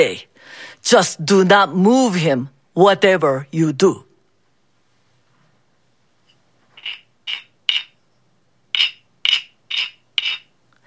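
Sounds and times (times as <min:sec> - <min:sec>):
speech: 0:00.0 - 0:04.1
cricket chirping: 0:06.8 - 0:08.0, 0:08.7 - 0:10.5.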